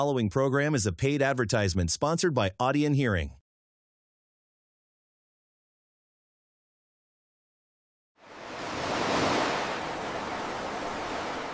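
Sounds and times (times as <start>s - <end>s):
speech: 0.0s - 3.4s
ocean waves roaring: 8.2s - 11.5s.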